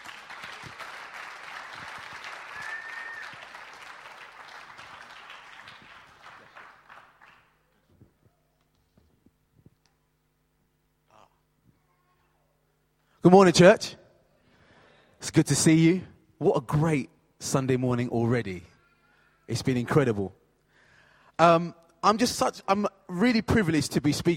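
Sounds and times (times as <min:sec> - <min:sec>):
crowd applauding: 0:00.0 - 0:07.7
speech: 0:13.2 - 0:14.0, 0:15.4 - 0:18.7, 0:19.5 - 0:20.4, 0:21.4 - 0:24.3.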